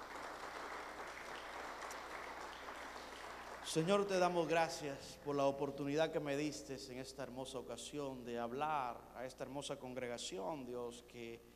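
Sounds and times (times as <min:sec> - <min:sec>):
audience applauding: 0:00.0 - 0:04.4
speech: 0:03.7 - 0:11.5.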